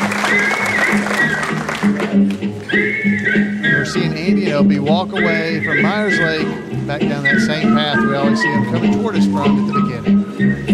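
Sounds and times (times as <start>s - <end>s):
crowd cheering and applauding: 0.0s - 2.9s
speech: 4.0s - 10.7s.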